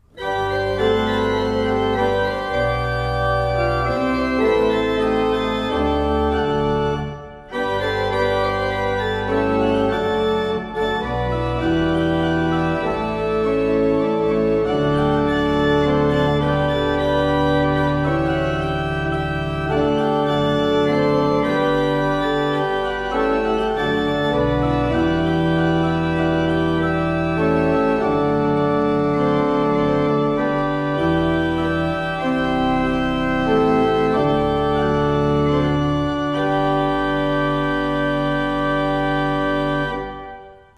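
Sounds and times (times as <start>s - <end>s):
Rohlfing Kreienbrink pipe organ: 0.0s - 40.7s.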